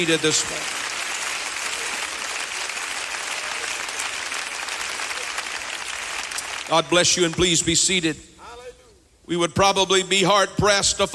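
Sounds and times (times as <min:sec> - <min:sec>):
speech: 0:00.0 - 0:00.8, 0:06.7 - 0:08.4, 0:09.3 - 0:11.1
audience clapping hands in praise: 0:00.0 - 0:07.6.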